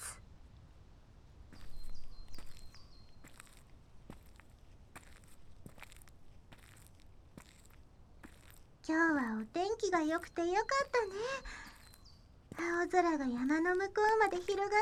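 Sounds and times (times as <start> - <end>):
birds chirping: 1.5 - 4.4, 8.0 - 14.8
soft footsteps of someone setting off on an outdoor walk: 1.5 - 14.8
speech: 8.9 - 11.7, 12.6 - 14.8.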